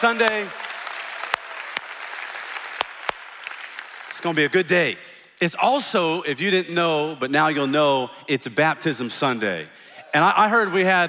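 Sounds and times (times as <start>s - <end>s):
speech: 0.0s - 0.6s, 4.2s - 11.0s
audience clapping hands: 0.0s - 5.0s.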